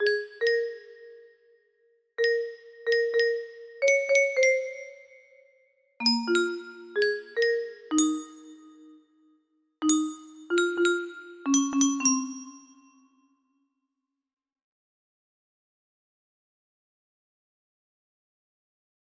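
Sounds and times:
music box melody: 0.0s - 1.4s, 2.2s - 5.4s, 6.0s - 9.0s, 9.8s - 13.2s.

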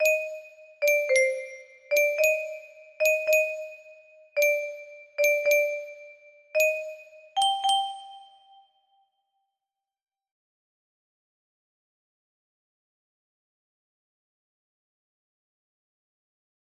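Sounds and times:
music box: 0.0s - 8.8s.

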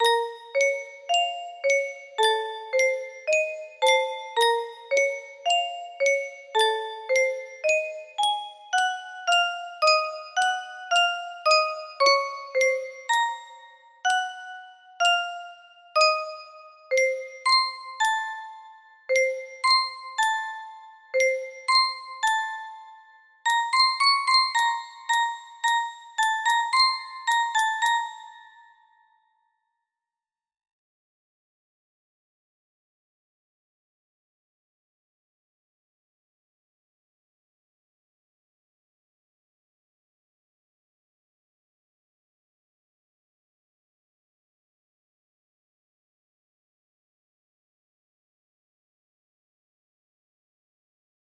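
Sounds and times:
music box melody: 0.0s - 29.1s.

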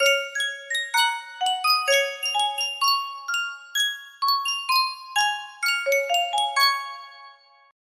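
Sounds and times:
Sankyo miniature music box melody: 0.0s - 7.7s.

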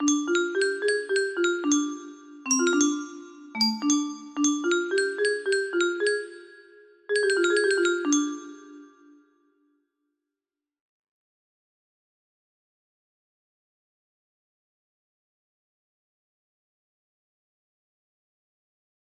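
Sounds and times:
music box melody: 0.0s - 9.2s.

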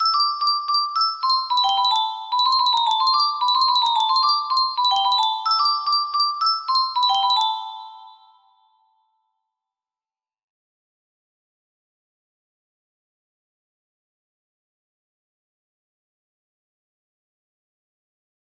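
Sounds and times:
music box: 0.0s - 9.2s.

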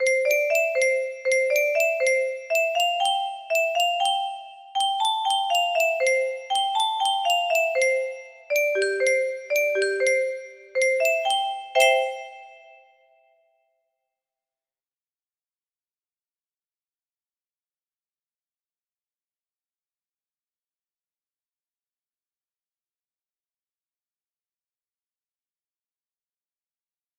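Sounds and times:
music box melody: 0.0s - 13.0s.

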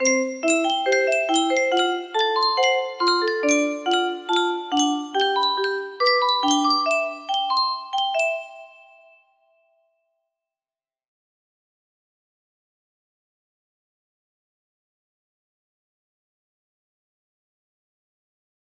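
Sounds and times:
music box melody: 0.0s - 9.4s.

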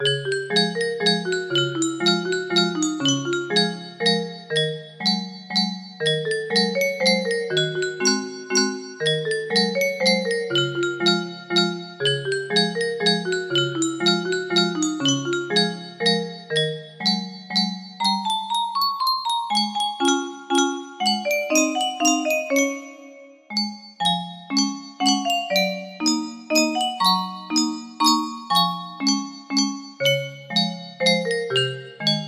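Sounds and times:
music box waltz melody: 0.0s - 32.2s.

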